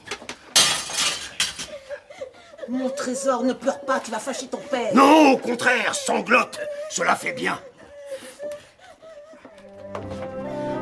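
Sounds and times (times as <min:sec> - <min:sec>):
windowpane breaking: 0:00.5 - 0:01.7
speech: 0:02.7 - 0:07.7.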